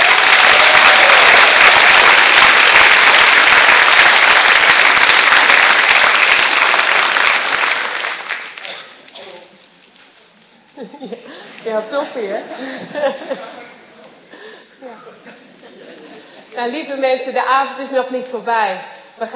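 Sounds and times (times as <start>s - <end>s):
audience applause in a church: 0.0s - 9.1s
laughter: 10.8s - 16.6s
speech: 11.8s - 13.5s, 16.6s - 19.3s.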